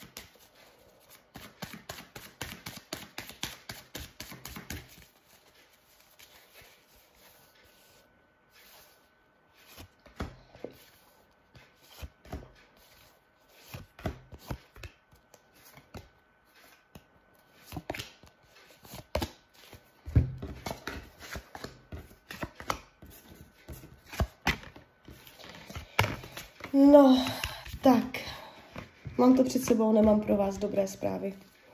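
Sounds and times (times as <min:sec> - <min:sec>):
tarot cards being shuffled: 0:00.0 - 0:09.0, 0:09.6 - 0:26.8
speech: 0:26.8 - 0:28.4, 0:29.2 - 0:31.5.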